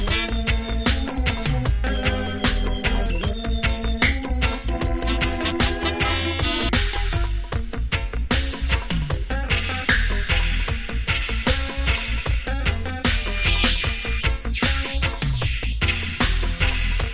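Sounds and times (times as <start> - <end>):
African organ pickout playing: 0.0 - 17.1.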